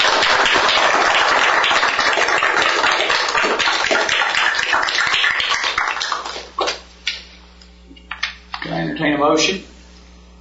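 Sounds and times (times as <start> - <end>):
audience applause: 0.0 - 6.8
speech: 9.3 - 9.6.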